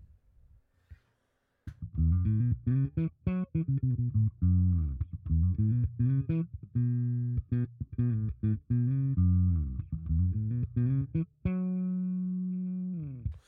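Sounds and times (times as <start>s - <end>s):
electric bass riff with both pickups at half: 1.8s - 13.4s.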